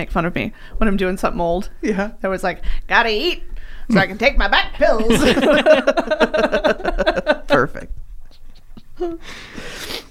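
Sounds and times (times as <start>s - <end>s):
speech: 0.0s - 8.0s, 9.0s - 10.0s
laughter: 4.9s - 7.9s
person sniffing: 8.3s - 10.0s.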